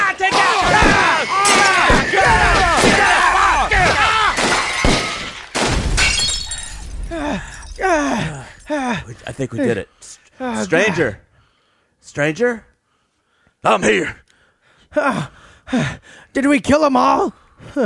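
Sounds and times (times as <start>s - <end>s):
people screaming and shouting: 0.0s - 5.0s
crashing and shattering impacts: 0.3s - 8.1s
gunfire sound effects in an audio drama shootout: 4.4s - 6.0s
speech: 9.1s - 11.2s, 12.0s - 12.7s, 13.6s - 14.2s, 14.9s - 17.8s.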